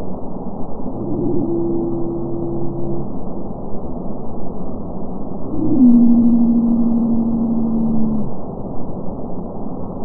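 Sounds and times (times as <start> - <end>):
Madagascan pygmy blue whale song sped up ten times: 0.8 - 3.6, 5.4 - 8.3.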